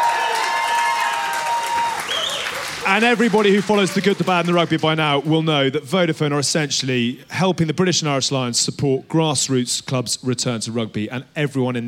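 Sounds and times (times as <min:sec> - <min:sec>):
crowd cheering and applause for Vodafone at a grassroots rugby day in Bannockburn: 0:00.0 - 0:05.4
whistles in the crowd: 0:01.9 - 0:02.6
speech: 0:02.9 - 0:11.8.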